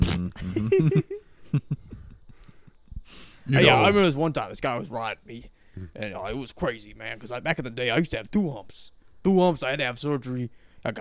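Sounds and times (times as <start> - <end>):
voice imitating a camel spitting: 0.0 - 0.7
speech: 0.6 - 1.1, 3.5 - 11.0.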